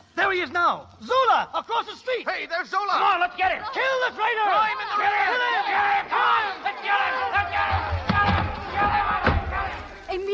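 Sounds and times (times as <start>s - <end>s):
speech: 0.4s - 8.0s
angry mob shouting outside house: 3.6s - 10.1s
dull thumps: 7.3s - 9.8s.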